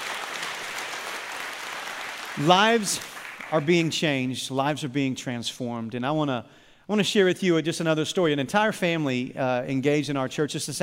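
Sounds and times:
audience applause: 0.0s - 4.0s
speech: 2.4s - 10.8s.

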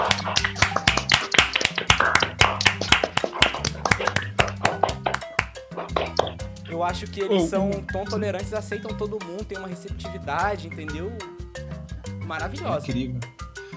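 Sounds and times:
crowd clapping: 0.0s - 6.5s
speech: 6.8s - 11.4s, 12.3s - 13.4s.

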